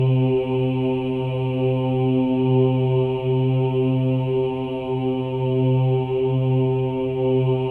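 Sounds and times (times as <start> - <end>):
chorus of voices: 0.0 - 7.6.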